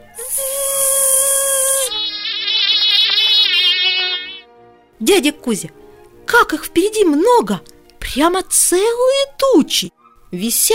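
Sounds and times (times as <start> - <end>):
high-pitched mosquito whine: 0.1 - 4.4
speech: 5.0 - 10.7.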